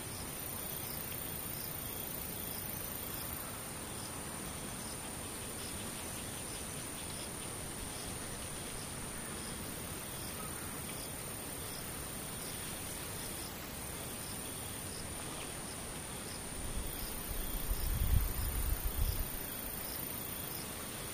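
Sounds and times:
insects chirping: 0.0s - 21.1s.

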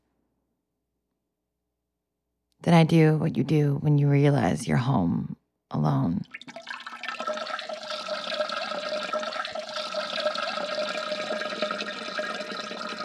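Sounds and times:
speech: 2.6s - 6.6s
bidet water running: 6.2s - 13.0s.

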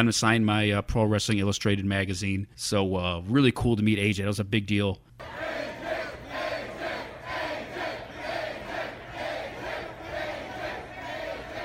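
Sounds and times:
speech: 0.0s - 5.6s
large crowd chanting in unison at autograph signing: 5.2s - 11.6s.

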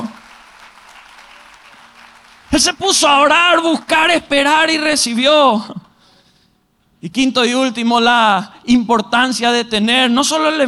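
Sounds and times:
audience applause: 0.0s - 4.2s
speech: 2.6s - 5.8s, 7.0s - 10.6s.

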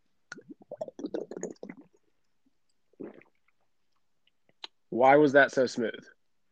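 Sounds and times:
person gulping a chug of whiskey: 0.3s - 3.7s
speech: 5.0s - 6.2s.

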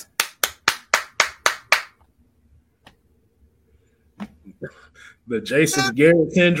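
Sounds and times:
hands clapping: 0.1s - 2.1s
speech: 5.3s - 6.5s.

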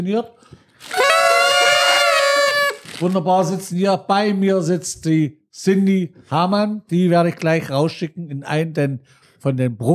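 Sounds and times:
speech: 0.0s - 1.0s, 3.0s - 9.9s
carnival party horns being blown: 0.8s - 3.2s.

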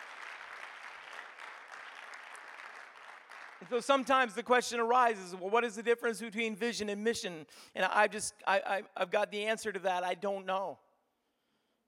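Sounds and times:
audience clapping hands: 0.0s - 4.4s
speech: 3.6s - 10.8s.

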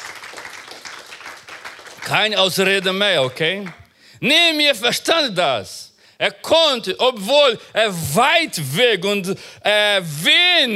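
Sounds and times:
crowd applauding: 0.0s - 3.8s
speech: 2.0s - 10.7s.

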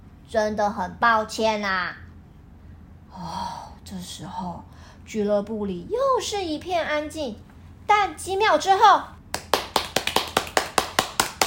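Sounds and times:
speech: 0.3s - 2.0s, 3.2s - 9.2s
applause: 9.3s - 11.4s.

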